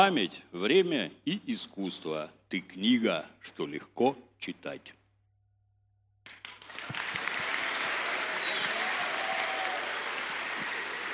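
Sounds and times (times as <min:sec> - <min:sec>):
speech: 0:00.0 - 0:05.0
audience applause: 0:06.3 - 0:11.1.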